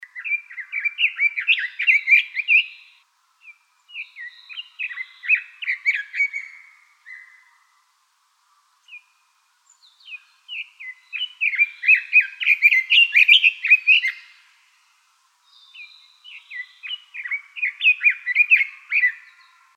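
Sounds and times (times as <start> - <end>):
long-tailed tit calls: 0.0 - 7.4, 10.0 - 14.4, 15.6 - 19.6.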